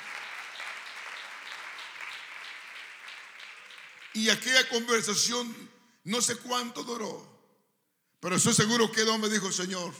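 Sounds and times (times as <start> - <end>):
audience applauding: 0.0 - 4.5
speech: 4.2 - 7.3, 8.2 - 9.9.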